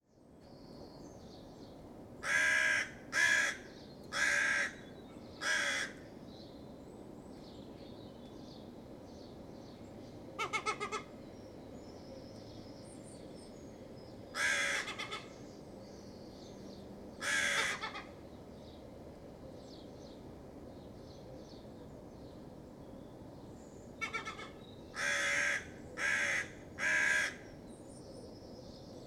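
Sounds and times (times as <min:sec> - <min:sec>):
crows giving alarm calls in response to a fox: 0:02.2 - 0:04.8, 0:05.4 - 0:06.1, 0:10.4 - 0:11.1, 0:14.3 - 0:15.4, 0:17.2 - 0:18.2, 0:24.0 - 0:27.6.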